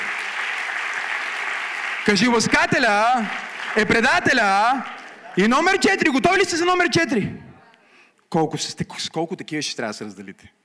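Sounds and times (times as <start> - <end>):
audience applauding: 0.0 - 6.6
speech: 2.0 - 7.4, 8.3 - 10.6.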